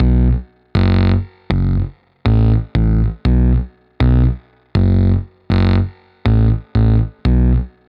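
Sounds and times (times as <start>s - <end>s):
brass bass: 0.0s - 7.9s.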